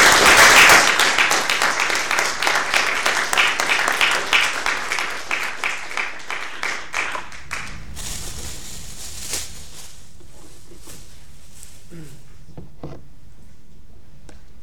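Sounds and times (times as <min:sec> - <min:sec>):
conference audience applause thanking a speaker: 0:00.0 - 0:08.0.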